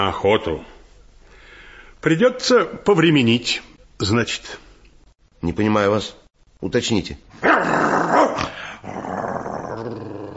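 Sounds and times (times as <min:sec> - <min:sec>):
speech: 0:00.0 - 0:00.7, 0:02.0 - 0:04.6, 0:05.4 - 0:09.0
dog growling and barking at guest: 0:07.4 - 0:10.3.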